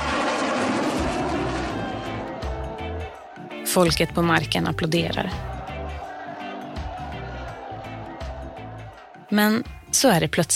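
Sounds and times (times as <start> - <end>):
fighter jet flying overhead: 0.0 - 3.6
laughter: 1.4 - 3.7, 5.0 - 9.3
speech: 3.7 - 5.5, 9.3 - 10.5.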